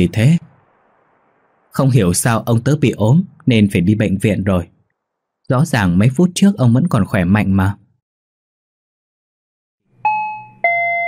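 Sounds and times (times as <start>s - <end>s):
speech: 0.0s - 0.4s, 1.8s - 4.8s, 5.5s - 7.8s
doorbell two-tone chime: 10.0s - 11.0s.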